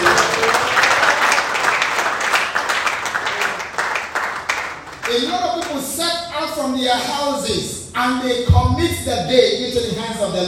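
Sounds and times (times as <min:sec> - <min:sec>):
audience clapping: 0:00.0 - 0:05.9
speech: 0:06.9 - 0:10.4.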